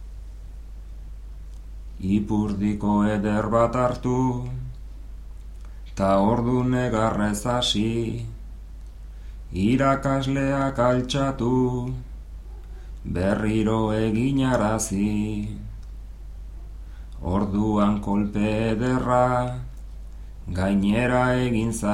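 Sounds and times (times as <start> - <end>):
person singing improvised bertso verses: 2.0 - 4.8, 5.9 - 8.4, 9.5 - 12.1, 13.0 - 16.0, 17.2 - 21.9.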